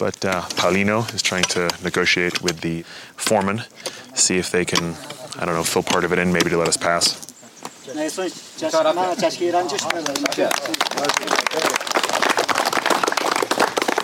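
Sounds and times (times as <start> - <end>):
speech: 0.0 - 7.3, 7.9 - 11.8
voices calling out: 0.0 - 14.0
crowd applauding outdoors: 9.6 - 14.0.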